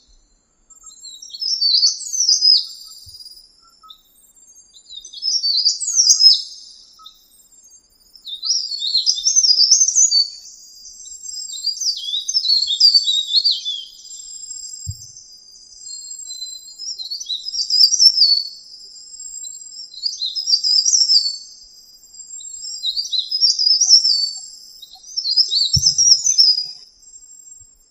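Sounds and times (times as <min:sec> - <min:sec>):
mountain leaf warbler high thin song: 0:00.0 - 0:27.8
low thump: 0:25.8 - 0:26.1.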